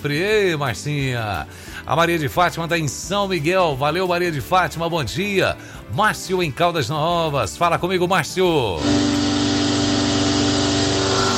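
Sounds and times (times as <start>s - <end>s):
speech: 0.0s - 9.2s
chainsaw running: 8.8s - 11.3s.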